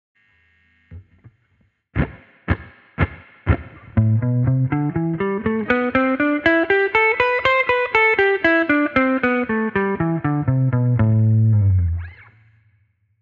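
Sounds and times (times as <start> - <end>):
blues music: 2.0 - 12.3.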